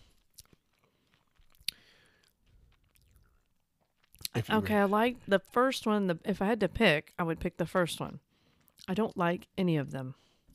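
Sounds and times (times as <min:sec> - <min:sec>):
person crunching on a cracker: 0:00.0 - 0:04.3
quiet chewing: 0:00.0 - 0:04.4
speech: 0:04.4 - 0:10.3.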